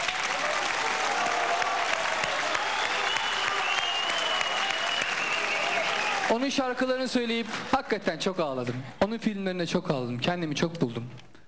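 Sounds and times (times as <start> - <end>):
audience applause: 0.0 - 6.5
speech: 6.3 - 11.3.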